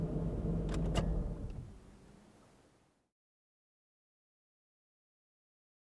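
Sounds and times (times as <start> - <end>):
car parking heard from inside: 0.2 - 2.0.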